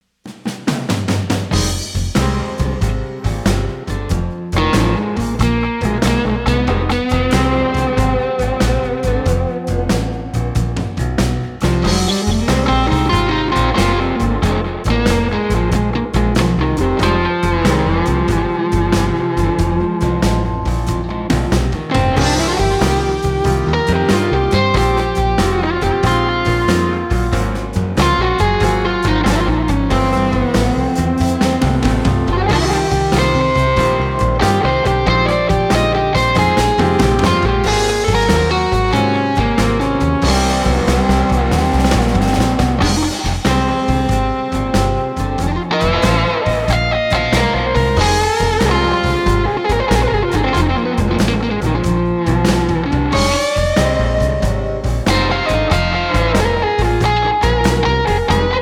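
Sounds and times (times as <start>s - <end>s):
guitar: 1.0s - 58.6s.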